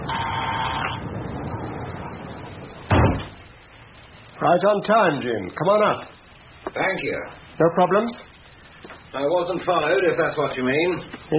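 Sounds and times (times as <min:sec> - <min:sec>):
door being pushed open: 0:02.9 - 0:03.4
speech: 0:04.4 - 0:06.2, 0:06.8 - 0:08.3, 0:09.1 - 0:11.3.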